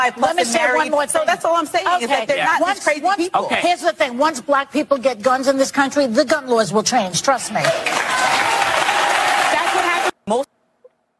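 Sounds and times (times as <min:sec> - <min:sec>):
speech: 0:00.0 - 0:08.0, 0:10.3 - 0:10.6
crowd clapping: 0:07.5 - 0:10.2.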